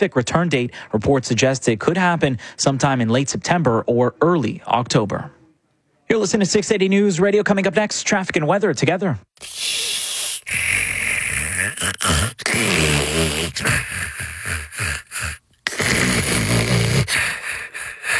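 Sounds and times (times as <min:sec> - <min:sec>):
speech: 0:00.0 - 0:05.4, 0:06.1 - 0:09.8, 0:11.8 - 0:16.2
snoring: 0:09.4 - 0:18.1.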